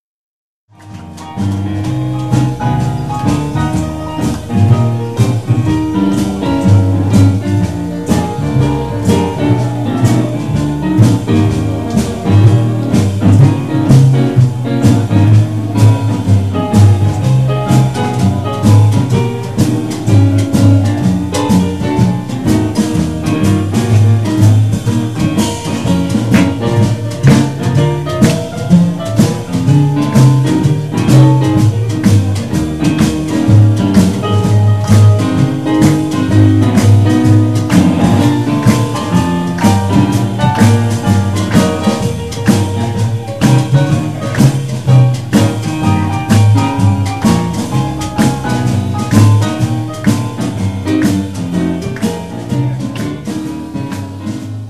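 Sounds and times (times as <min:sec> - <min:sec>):
jazz band playing: 0:00.7 - 0:54.6.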